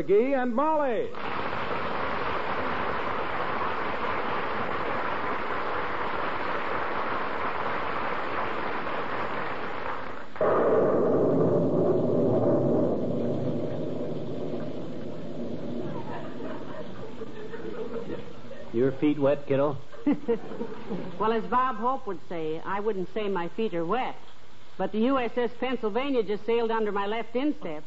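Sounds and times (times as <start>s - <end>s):
speech: 0.0s - 1.4s, 10.4s - 10.8s, 18.8s - 27.8s
heavy rain in the street: 1.2s - 10.6s, 11.7s - 17.9s
laughter: 15.8s - 19.0s, 19.9s - 21.2s.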